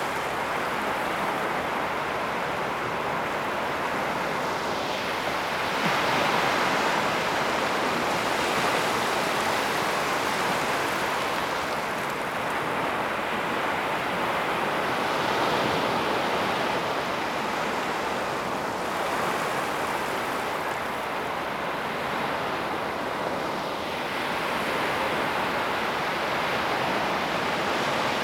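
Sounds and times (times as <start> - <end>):
water soundscape: 0.0 - 28.2.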